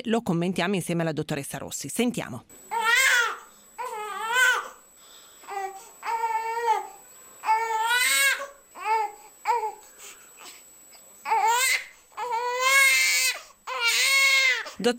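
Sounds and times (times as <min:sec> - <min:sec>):
speech: 0:00.0 - 0:02.8
infant crying for its mother's closeness and breastfeeding: 0:02.7 - 0:04.8, 0:05.4 - 0:09.8, 0:11.2 - 0:14.8.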